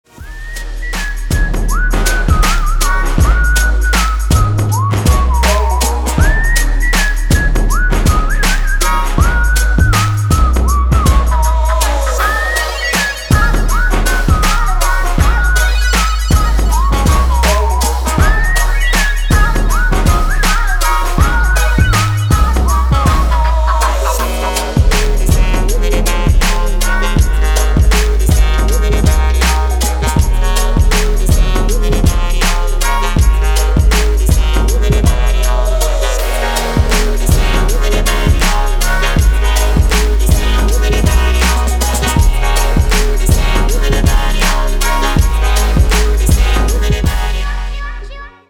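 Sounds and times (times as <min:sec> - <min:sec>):
electronic remix style music: 0:00.0 - 0:48.4.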